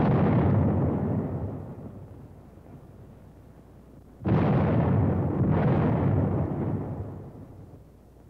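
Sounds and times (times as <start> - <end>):
37-millimeter anti-tank gun firing deep booms: 0.0 - 2.0, 4.2 - 7.5.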